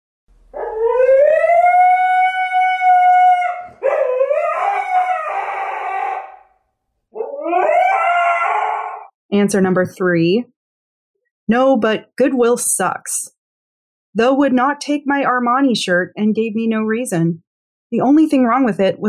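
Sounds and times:
husky dog howling scream: 0.5s - 9.1s
speech: 9.4s - 10.5s, 11.5s - 13.4s, 14.1s - 19.0s.

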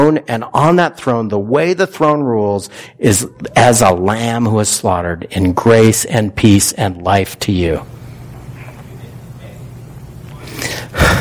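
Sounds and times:
speech: 0.0s - 8.0s
deep breath taken during a sermon: 2.7s - 3.0s, 10.4s - 11.1s.

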